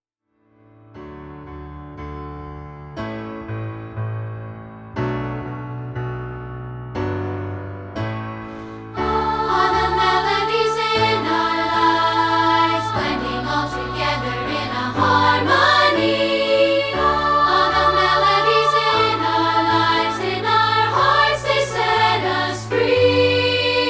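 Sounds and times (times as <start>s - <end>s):
piano: 0.2s - 23.8s
vocals: 8.5s - 23.8s.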